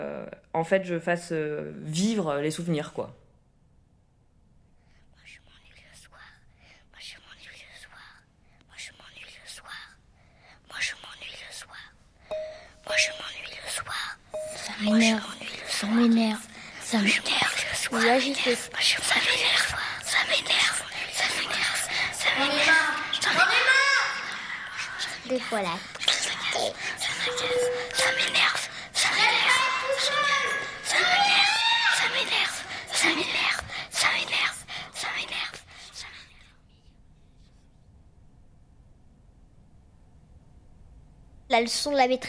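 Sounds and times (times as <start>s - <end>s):
speech: 0.0s - 3.2s, 14.8s - 19.1s, 25.3s - 25.9s, 41.6s - 42.2s
classmates whispering and chattering in classroom: 10.8s - 35.4s.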